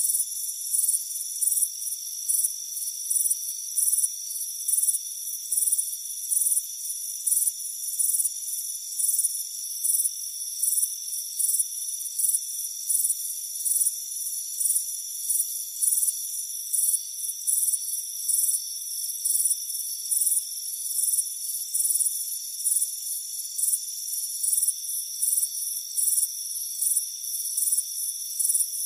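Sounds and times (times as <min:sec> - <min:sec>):
cricket chirps: 0:00.0 - 0:28.8.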